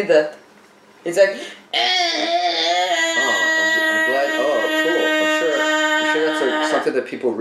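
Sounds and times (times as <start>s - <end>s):
speech: 0.0s - 0.4s, 1.0s - 3.3s, 6.8s - 7.3s
voice imitating a blaring movie alarm clock: 1.8s - 6.9s.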